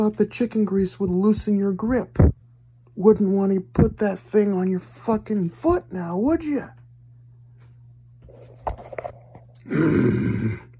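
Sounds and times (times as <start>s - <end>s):
speech: 0.0s - 2.3s, 3.0s - 6.8s, 9.7s - 10.7s
short grunts and breathy sounds: 9.5s - 10.7s
man growling angrily: 9.6s - 10.7s.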